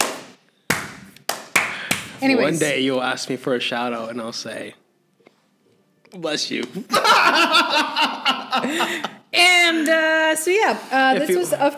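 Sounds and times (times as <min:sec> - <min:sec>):
slow hand clapping: 0:00.0 - 0:02.2
speech: 0:02.2 - 0:04.8, 0:06.1 - 0:11.7
laughter: 0:06.8 - 0:09.2.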